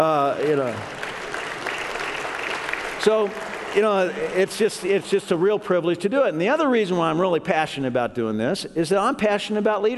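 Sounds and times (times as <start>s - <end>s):
speech: 0.0s - 1.0s, 3.0s - 9.9s
audience applause: 0.0s - 5.5s.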